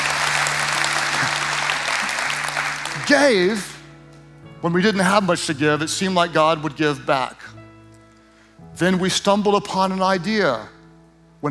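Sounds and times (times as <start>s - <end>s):
crowd at a talk clapping: 0.0s - 3.8s
speech: 3.1s - 3.7s, 4.6s - 7.6s, 8.8s - 10.8s.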